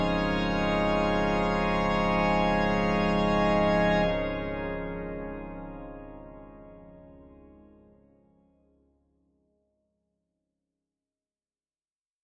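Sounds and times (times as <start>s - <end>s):
organ improvisation: 0.0s - 7.6s.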